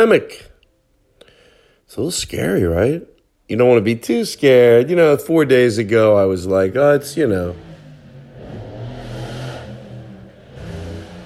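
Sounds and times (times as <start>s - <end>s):
speech: 0.0s - 0.5s, 1.9s - 7.7s
car arriving outside the house: 5.3s - 11.2s.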